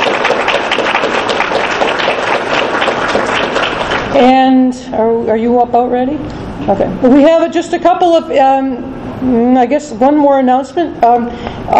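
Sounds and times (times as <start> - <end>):
audience applause: 0.0 - 4.1
speech: 4.2 - 11.7.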